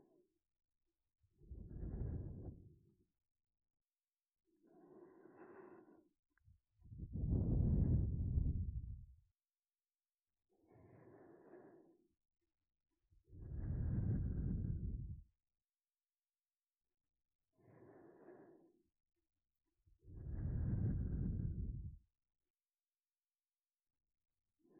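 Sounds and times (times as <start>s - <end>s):
sleep breathing loop: 1.6s - 2.7s, 4.7s - 6.1s, 7.2s - 8.8s, 10.7s - 12.0s, 13.4s - 15.2s, 17.6s - 18.7s, 20.2s - 21.9s.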